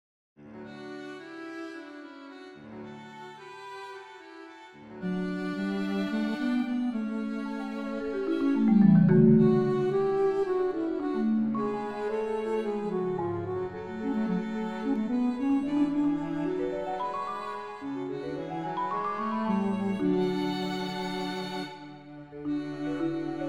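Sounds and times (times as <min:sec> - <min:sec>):
violin: 0:00.4 - 0:23.4
bass flute: 0:05.1 - 0:17.8
marimba: 0:08.3 - 0:10.3.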